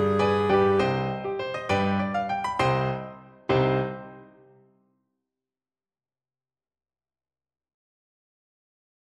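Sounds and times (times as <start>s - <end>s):
clarinet melody: 0.0s - 4.4s.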